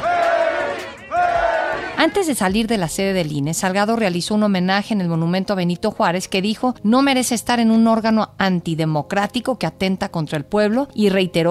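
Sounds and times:
crowd chanting slogans: 0.0s - 2.0s
speech: 2.0s - 11.4s.

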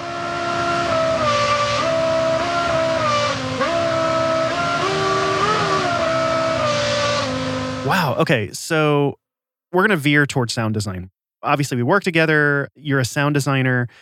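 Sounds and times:
real car engine running and revving: 0.0s - 8.1s
speech: 8.0s - 13.9s.

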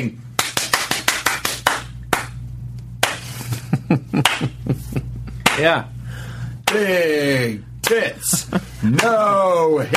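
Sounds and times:
speech: 0.0s - 0.2s, 3.9s - 4.8s, 5.6s - 6.0s, 6.7s - 9.9s
fast clapping slowing into slow clap: 0.4s - 2.4s, 4.2s - 4.6s.

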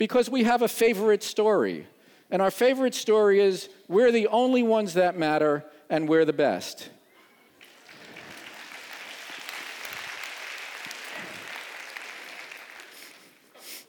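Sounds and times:
speech: 0.0s - 7.0s
audience clapping: 7.6s - 13.6s.

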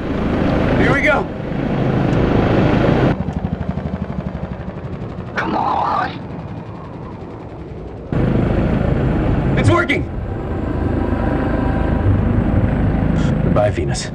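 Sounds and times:
improvised helicopter blades spinning: 0.0s - 14.1s
speech: 0.8s - 1.4s, 13.8s - 14.1s
person shouting: 5.4s - 6.2s.

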